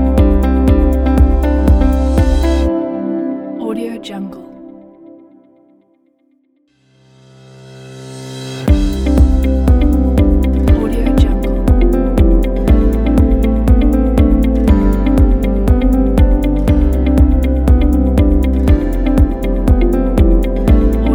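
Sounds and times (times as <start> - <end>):
inspiring corporate music: 0.0 - 3.0, 8.5 - 21.1.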